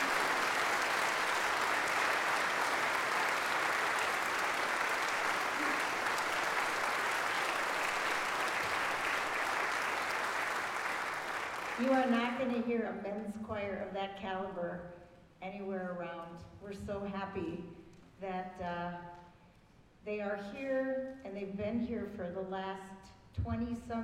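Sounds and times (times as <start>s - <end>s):
audience applause: 0.0s - 11.9s
speech: 12.0s - 19.0s, 20.0s - 24.0s.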